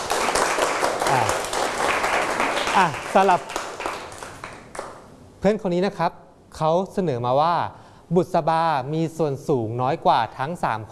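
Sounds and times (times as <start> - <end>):
classroom applause for a student: 0.0 - 5.0
speech: 1.1 - 1.4, 2.8 - 3.6, 5.4 - 10.8.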